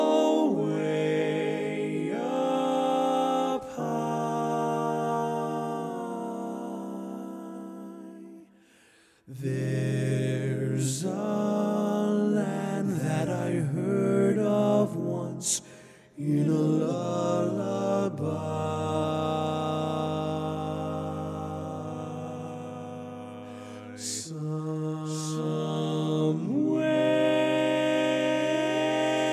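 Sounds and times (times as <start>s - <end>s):
lead voice singing a cappella: 0.0s - 8.5s, 9.3s - 29.3s.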